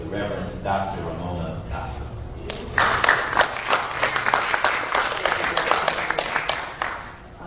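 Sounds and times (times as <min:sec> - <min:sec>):
speech: 0:00.1 - 0:01.4
audience applause: 0:02.5 - 0:07.2.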